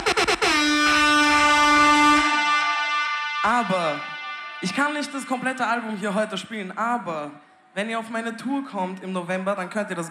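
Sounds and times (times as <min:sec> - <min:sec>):
air horn sound effect blasts: 0:00.0 - 0:06.5
speech: 0:03.7 - 0:10.0.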